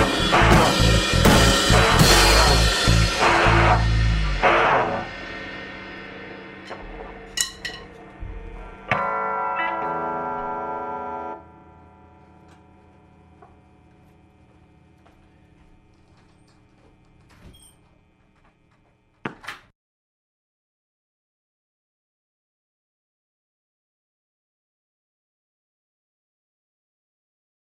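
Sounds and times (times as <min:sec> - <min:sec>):
warm-up jam: 0:00.0 - 0:11.6.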